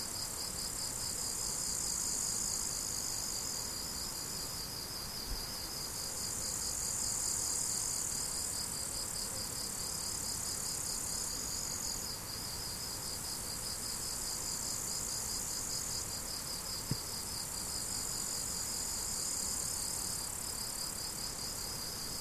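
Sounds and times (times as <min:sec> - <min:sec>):
crickets chirping: 0:00.0 - 0:22.1.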